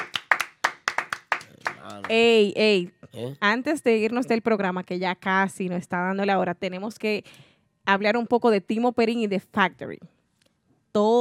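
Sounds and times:
hand claps: 0.0 - 2.2
speech: 2.0 - 10.2, 10.9 - 11.1.

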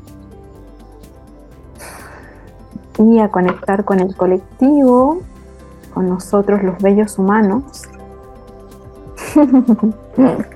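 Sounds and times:
deep breath in: 1.8 - 2.7
speech: 3.0 - 5.3, 6.0 - 7.9, 9.4 - 10.5
laughter: 9.2 - 10.5.

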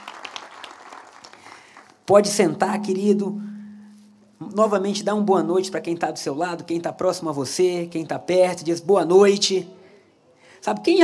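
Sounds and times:
audience applauding: 0.0 - 2.1
speech: 2.1 - 3.5, 4.5 - 9.8, 10.6 - 11.0.

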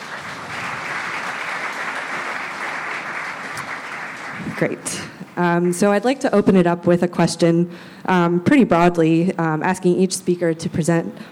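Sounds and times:
audience applause: 0.0 - 4.8
speech: 4.6 - 11.2.

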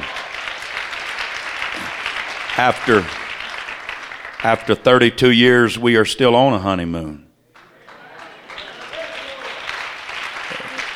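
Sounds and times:
audience clapping: 0.0 - 5.1, 7.5 - 10.9
speech: 2.6 - 3.2, 4.4 - 7.2.

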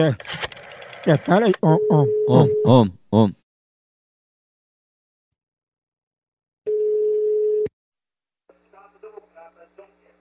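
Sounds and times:
speech: 0.0 - 0.4, 1.0 - 3.4
telephone tone of a call placed from a pharmacy: 1.4 - 2.8, 6.7 - 7.7.

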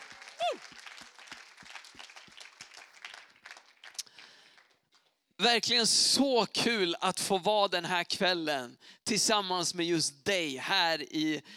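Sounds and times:
cheering: 0.0 - 4.0
crowd applause: 0.0 - 4.8
speech: 5.4 - 11.5.

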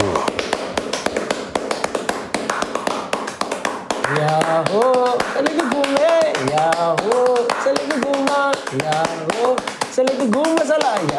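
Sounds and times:
audience rhythmic clapping: 0.0 - 11.1.

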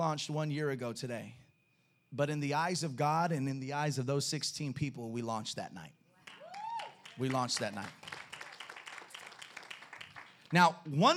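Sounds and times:
speech: 0.0 - 1.4, 2.1 - 6.0, 7.2 - 8.1, 10.5 - 11.1
crowd clapping: 6.2 - 10.8.

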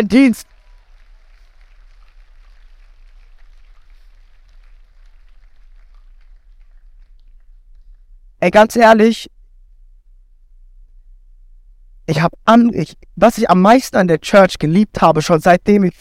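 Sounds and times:
speech: 0.0 - 0.5, 8.4 - 9.3, 12.1 - 16.0
audience applause: 0.0 - 7.6.

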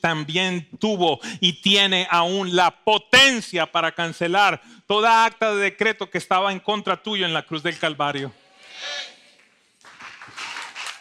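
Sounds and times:
speech: 0.0 - 9.1
audience applause: 9.8 - 11.0.

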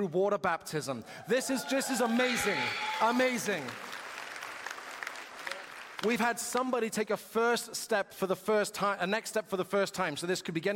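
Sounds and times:
speech: 0.0 - 4.0, 6.0 - 10.7
crowd whooping and cheering: 1.0 - 5.7
crowd applause: 1.3 - 6.7.

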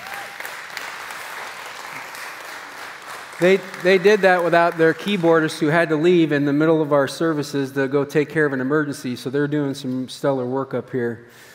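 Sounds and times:
audience clapping: 0.0 - 6.2
speech: 3.4 - 11.5.

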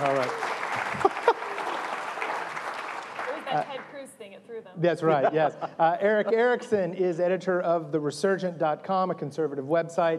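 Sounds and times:
audience applause: 0.0 - 3.9
laughter: 0.9 - 1.9, 5.0 - 6.9
speech: 4.8 - 10.1.

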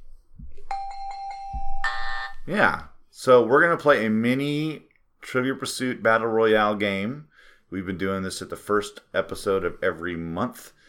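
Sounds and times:
game show buzzer: 1.8 - 2.4
speech: 2.5 - 10.8.

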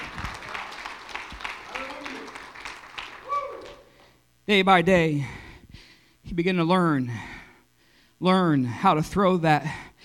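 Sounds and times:
audience clapping hands: 0.0 - 4.2
speech: 4.5 - 5.4, 6.3 - 7.3, 8.2 - 9.9.

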